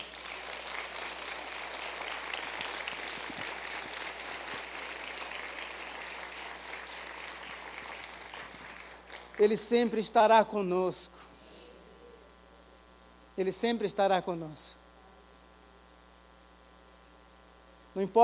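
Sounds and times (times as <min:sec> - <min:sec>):
audience applauding: 0:00.0 - 0:09.4
speech: 0:09.4 - 0:11.2, 0:13.4 - 0:14.8, 0:18.0 - 0:18.2.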